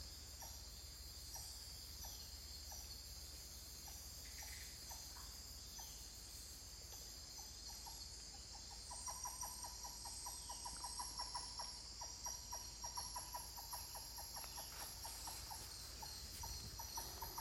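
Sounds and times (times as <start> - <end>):
insect chorus: 0.0 - 17.4
titi monkey pulsed calls: 8.7 - 17.4.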